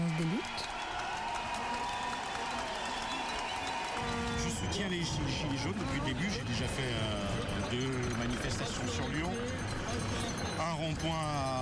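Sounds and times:
faint cheers: 0.0s - 6.2s
protesters applauding: 0.0s - 11.6s
speech: 0.2s - 0.8s, 4.8s - 11.6s
murmur of voices: 3.2s - 11.6s.

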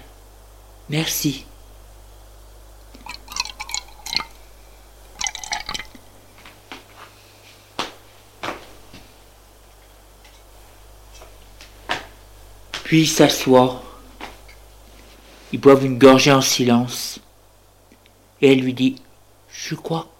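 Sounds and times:
speech: 0.9s - 1.5s, 12.9s - 13.9s, 15.5s - 17.2s, 18.4s - 19.0s, 19.6s - 20.1s
drink poured from a bottle into glasses: 2.9s - 4.4s, 5.1s - 6.0s
glass clinking: 3.0s - 4.4s, 5.2s - 6.0s.

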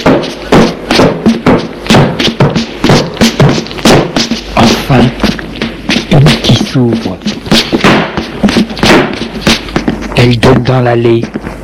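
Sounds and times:
knocking on doors: 0.0s - 11.4s
speech: 4.9s - 5.2s, 6.8s - 7.4s, 10.2s - 11.5s.

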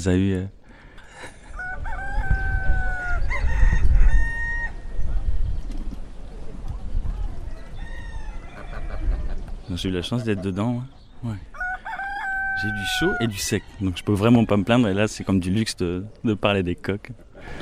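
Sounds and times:
speech: 0.0s - 0.6s, 9.7s - 11.5s, 12.6s - 17.6s
roosters crowing: 1.2s - 5.0s, 7.2s - 9.4s, 11.4s - 15.0s.

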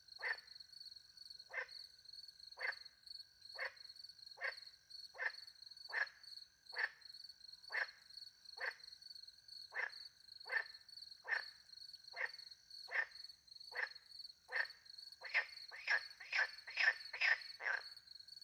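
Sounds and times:
frog croaking: 0.2s - 0.6s, 1.5s - 2.0s, 2.6s - 7.1s, 7.7s - 8.9s, 9.6s - 18.1s.

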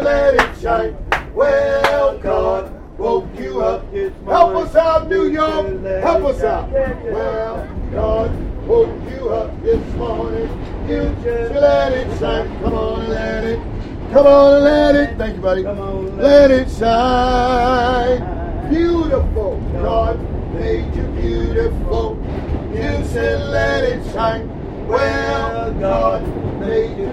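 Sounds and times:
low rumble in New York: 0.0s - 27.1s.

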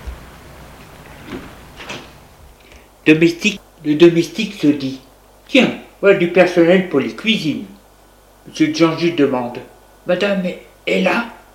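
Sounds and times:
quiet steady hiss: 0.0s - 11.5s
door opening with clunks: 1.1s - 2.2s
speech: 3.1s - 7.8s, 8.5s - 11.4s.

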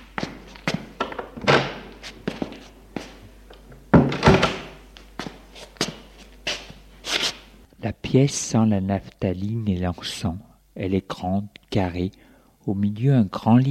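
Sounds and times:
door being opened with handle and latch clicks: 1.0s - 2.0s, 3.9s - 4.8s
speech: 7.8s - 13.6s.

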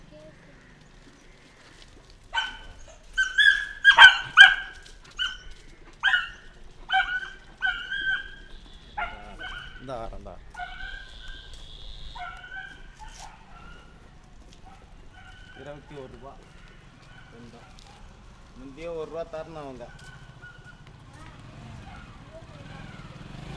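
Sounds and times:
dog: 2.3s - 11.5s, 12.1s - 18.6s, 19.2s - 23.3s.

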